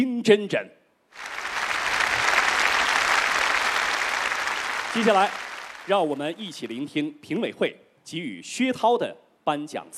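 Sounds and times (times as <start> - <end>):
speech: 0.0 - 1.4, 5.0 - 9.9
audience applause: 1.2 - 6.5.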